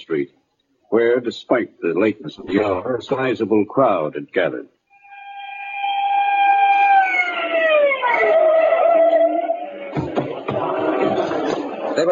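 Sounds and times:
speech: 0.0 - 4.8
police squad car siren: 4.9 - 10.4
laughter: 9.2 - 12.1.

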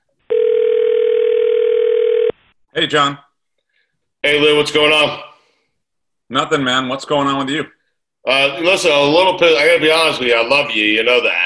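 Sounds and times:
telephone dial tone: 0.3 - 2.3
speech: 2.8 - 3.2, 4.2 - 5.3, 6.3 - 11.4.

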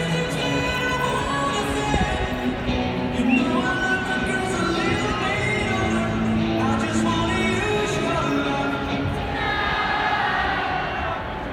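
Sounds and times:
ballpark walk-up song: 0.0 - 10.6
big crowd singing along in a ballpark: 0.0 - 11.5.

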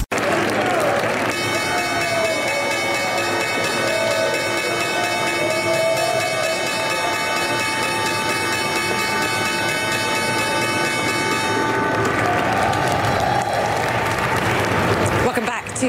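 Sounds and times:
applause: 0.1 - 4.5, 11.0 - 15.8
New York Stock Exchange opening bell: 1.3 - 12.1.

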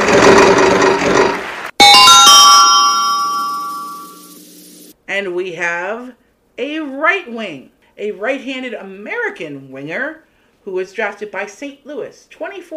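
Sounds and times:
prize wheel spinning in a hockey draft game: 0.2 - 4.6
bright ringing chime tones: 1.8 - 4.6
speech: 6.6 - 12.7.

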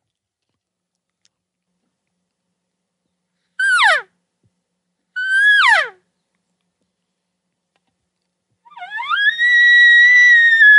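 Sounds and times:
soft light elk bugle whistling tone: 5.2 - 6.0, 8.6 - 10.7.

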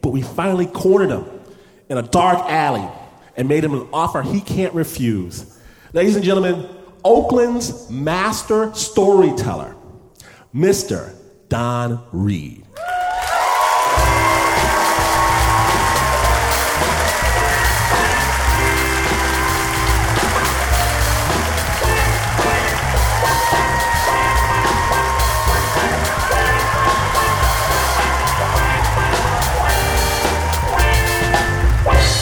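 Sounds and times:
speech: 0.0 - 9.8, 10.5 - 12.6
cheers and whoops: 12.8 - 31.9
crowd applauding: 12.8 - 32.2.

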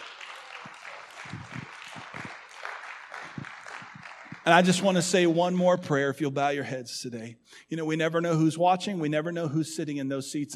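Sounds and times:
audience applause: 0.0 - 5.3
speech: 4.5 - 10.5.

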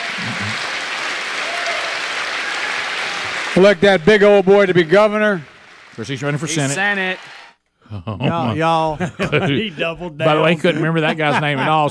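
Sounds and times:
crowd clapping: 0.0 - 7.6
speech: 3.6 - 11.8
laughter: 7.9 - 11.8.

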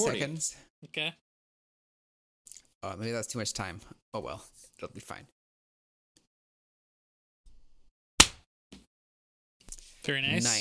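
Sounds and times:
speech: 0.0 - 1.2, 2.5 - 5.4, 10.0 - 10.5
hand clap: 8.2 - 8.4.

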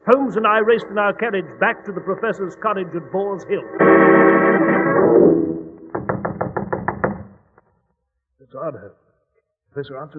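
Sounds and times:
speech: 0.1 - 5.6, 8.5 - 9.0, 9.8 - 10.1
sustained droning tone: 1.3 - 5.9
firm knocks on a door: 5.9 - 7.4.

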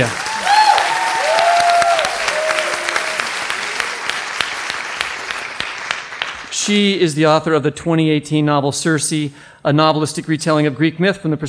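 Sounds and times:
speech: 0.0 - 0.2, 6.6 - 11.4
audience round of applause: 0.0 - 6.6.

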